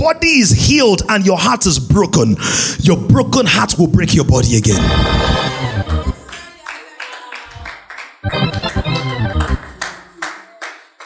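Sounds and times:
speech: 0.0s - 5.8s
audience clapping: 5.6s - 11.0s.

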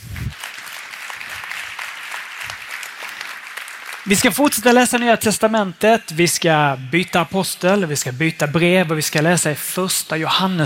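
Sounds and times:
audience applause: 0.0s - 5.1s
speech: 4.1s - 10.6s.

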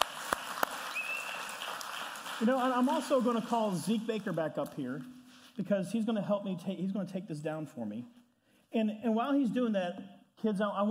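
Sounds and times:
applause: 0.0s - 4.3s
speech: 2.4s - 10.9s.

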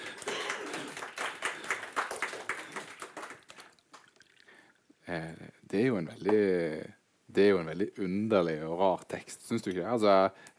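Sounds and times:
audience clapping: 0.0s - 4.2s
speech: 5.1s - 10.5s.

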